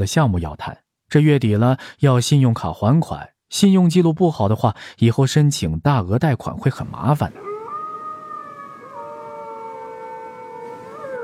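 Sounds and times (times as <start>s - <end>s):
speech: 0.0s - 7.5s
wolf howling: 7.3s - 11.2s.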